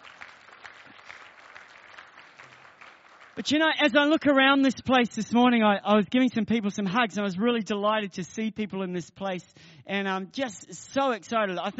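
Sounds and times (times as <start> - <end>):
audience applause: 0.0 - 3.4
speech: 3.4 - 11.7.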